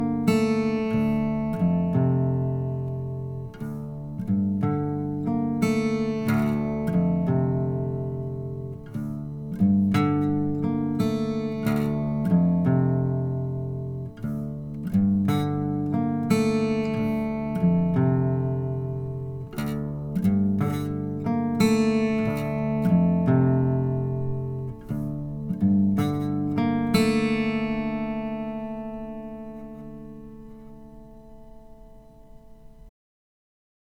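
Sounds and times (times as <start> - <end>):
dry acoustic guitar riff in D minor at 90 BPM: 0.0 - 32.9.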